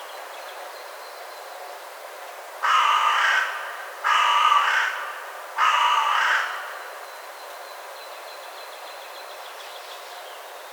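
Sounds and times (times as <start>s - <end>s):
carrion crow cawing: 2.6s - 6.9s.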